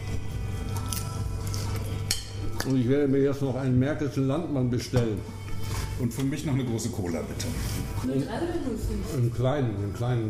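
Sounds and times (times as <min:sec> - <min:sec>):
person chewing while eating a meal: 0:00.5 - 0:02.1
speech: 0:02.6 - 0:05.4, 0:06.0 - 0:10.2.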